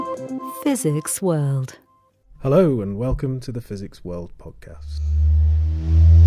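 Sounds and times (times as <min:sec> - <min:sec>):
sonified chirp of two neutron stars colliding: 0:00.4 - 0:02.2
speech: 0:00.7 - 0:01.8, 0:02.4 - 0:06.2.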